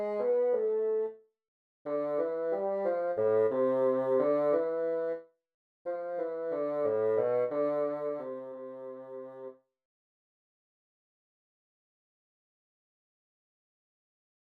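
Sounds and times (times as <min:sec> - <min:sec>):
bassoon etude: 0:00.0 - 0:01.2, 0:01.9 - 0:05.2, 0:05.9 - 0:09.6.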